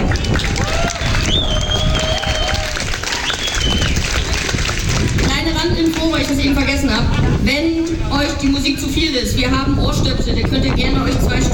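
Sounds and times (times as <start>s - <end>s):
cheers and whistles: 0.0s - 4.4s
crowd applause: 0.0s - 8.4s
speech: 7.5s - 11.5s.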